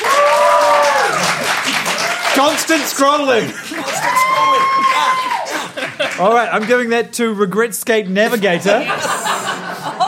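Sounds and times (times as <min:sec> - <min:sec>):
audience applause: 0:00.0 - 0:06.8
speech: 0:02.4 - 0:05.4, 0:06.0 - 0:09.2
laughter: 0:03.0 - 0:06.8, 0:08.2 - 0:10.0.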